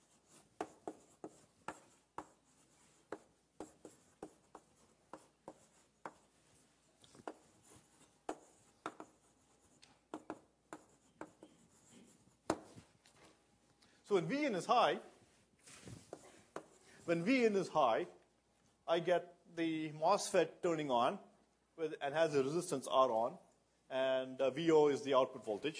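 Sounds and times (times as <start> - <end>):
pen strokes drawing an inverter circuit diagram by hand: 0.0 - 12.9
speech: 14.1 - 15.1, 17.1 - 18.2, 18.9 - 25.7.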